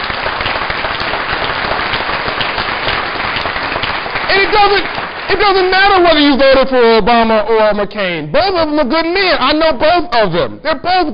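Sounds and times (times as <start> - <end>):
audience applause: 0.0 - 6.2
speech: 4.3 - 11.1.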